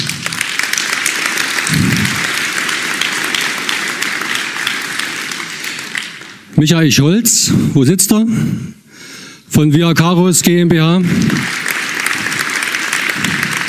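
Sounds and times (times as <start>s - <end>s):
audience applause: 0.0s - 6.6s, 11.0s - 13.6s
speech: 6.6s - 8.8s, 9.6s - 11.6s.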